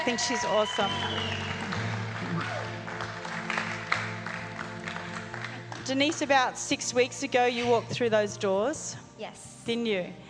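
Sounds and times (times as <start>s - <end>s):
speech: 0.0s - 1.6s, 5.9s - 10.2s
audience clapping: 0.0s - 6.6s.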